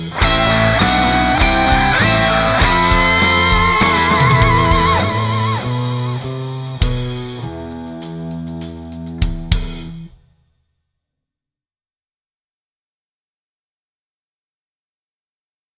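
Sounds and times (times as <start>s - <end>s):
piano: 0.1s - 9.7s.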